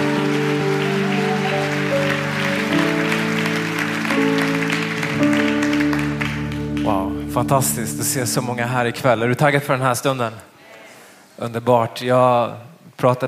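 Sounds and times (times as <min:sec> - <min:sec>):
large crowd applause: 0:00.0 - 0:07.4
keyboard-like chords: 0:00.0 - 0:09.4
speech: 0:07.4 - 0:10.5, 0:11.4 - 0:13.2.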